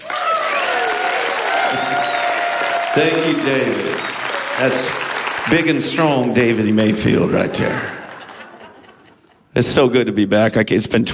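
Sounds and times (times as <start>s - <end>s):
high cheers and whistles: 0.0s - 5.4s
crowd applause welcoming a band onto a stage: 0.0s - 9.2s
speech: 3.0s - 8.0s, 9.6s - 11.1s
laughter: 7.0s - 9.5s.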